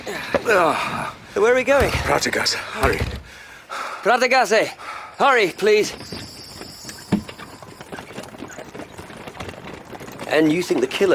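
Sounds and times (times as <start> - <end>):
speech: 0.1 - 3.4, 4.0 - 6.3, 10.3 - 11.1
hooves of a horse pulling a hackney cab: 6.0 - 11.1.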